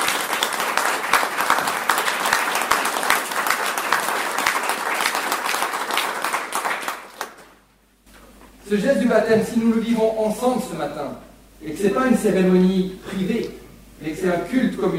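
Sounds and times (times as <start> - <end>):
audience applauding: 0.0 - 7.6
speech: 8.7 - 14.9.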